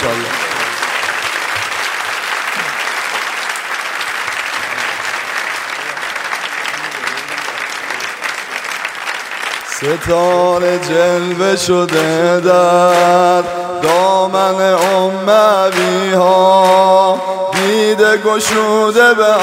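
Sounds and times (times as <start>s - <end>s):
large crowd applauding a woman on stage at a religious celebration: 0.0s - 19.4s
speech: 9.8s - 19.4s.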